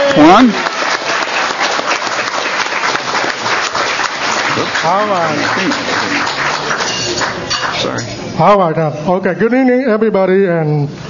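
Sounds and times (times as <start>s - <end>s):
audience applause: 0.0s - 8.0s
speech: 0.2s - 0.7s, 4.6s - 6.4s, 7.3s - 11.0s.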